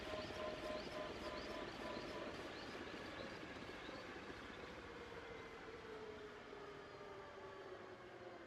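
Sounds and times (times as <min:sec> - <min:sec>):
Bell UH1 Iroquois helicopter landing and shutting down: 0:00.0 - 0:08.3.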